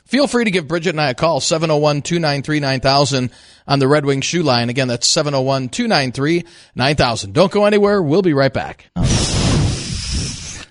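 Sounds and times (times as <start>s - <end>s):
speech: 0.1s - 9.3s
wind sound effect: 9.0s - 10.6s.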